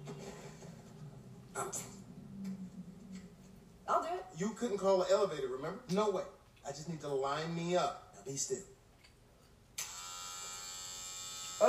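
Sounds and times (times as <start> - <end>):
speech: 1.6 - 2.0, 3.9 - 8.8
electric hair clippers buzzing: 9.8 - 11.6.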